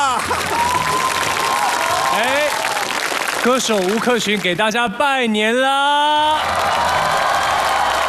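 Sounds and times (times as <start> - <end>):
audience applause at a Chinese New Year greeting show: 0.1 - 4.6, 6.3 - 8.0
speech: 3.4 - 7.1.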